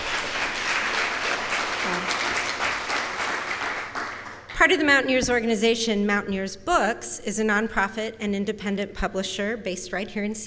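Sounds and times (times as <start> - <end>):
audience applause: 0.0 - 4.5
speech: 4.6 - 10.4.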